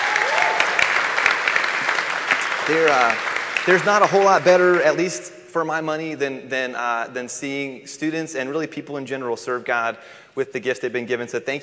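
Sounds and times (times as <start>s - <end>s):
audience applause: 0.0s - 5.1s
speech: 2.7s - 11.6s.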